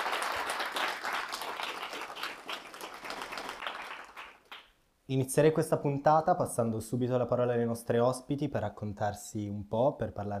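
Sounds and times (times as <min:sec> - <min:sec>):
audience applause: 0:00.0 - 0:04.7
speech: 0:05.1 - 0:10.3.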